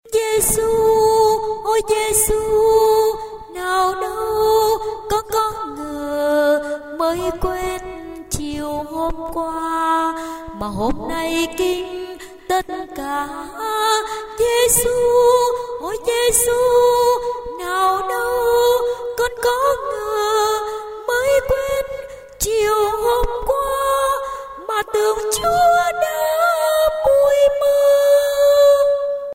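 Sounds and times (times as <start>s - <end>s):
soprano singing: 0.1s - 29.3s.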